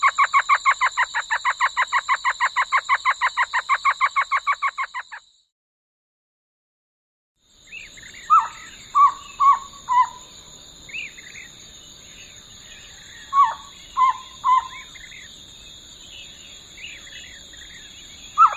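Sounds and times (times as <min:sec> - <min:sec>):
Elf owl chatter in a desert in the USA: 0:00.0 - 0:05.2, 0:07.7 - 0:10.3, 0:12.2 - 0:15.3, 0:16.7 - 0:18.5.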